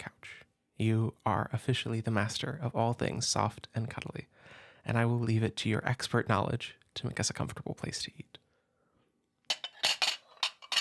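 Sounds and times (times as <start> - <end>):
speech: 0.8 - 8.3
plates and cutlery clinking: 9.5 - 10.8.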